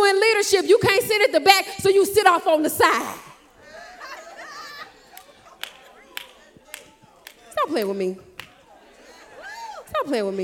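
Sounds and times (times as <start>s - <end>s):
speech: 0.4s - 3.3s, 7.6s - 8.3s, 10.0s - 10.4s
laughter: 3.4s - 7.1s, 8.5s - 9.9s
faint audience clapping: 5.0s - 8.7s.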